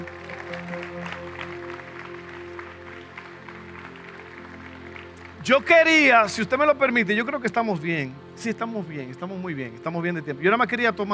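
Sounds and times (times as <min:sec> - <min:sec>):
audience applause: 0:00.0 - 0:06.1
speech: 0:05.4 - 0:11.1.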